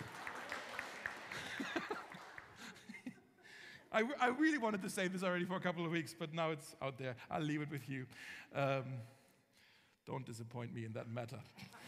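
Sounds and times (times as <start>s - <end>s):
audience clapping: 0.0s - 3.1s
laughter: 1.1s - 3.5s, 11.6s - 11.8s
speech: 3.9s - 9.2s, 10.1s - 11.8s.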